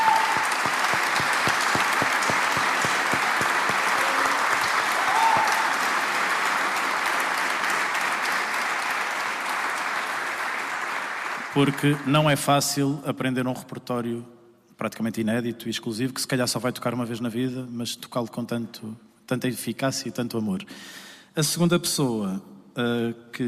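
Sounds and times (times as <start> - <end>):
audience applause: 0.0 - 12.0
speech: 11.6 - 23.4.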